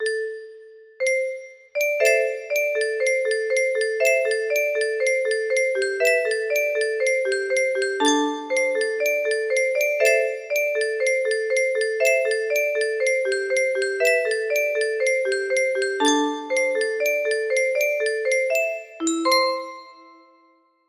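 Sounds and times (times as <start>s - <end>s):
music box: 0.0s - 20.8s.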